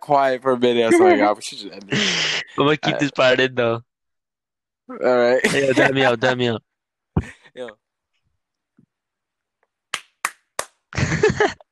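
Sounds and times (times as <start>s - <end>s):
speech: 0.0s - 3.9s, 4.9s - 7.8s, 11.0s - 11.6s
laughter: 0.9s - 3.5s, 5.4s - 6.5s, 11.0s - 11.6s
hand clapping: 9.9s - 10.9s.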